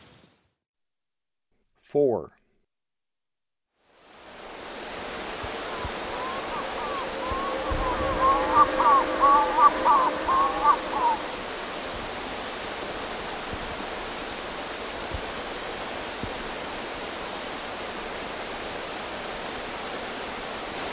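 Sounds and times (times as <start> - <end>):
South American snipe calling: 5.7 - 11.5.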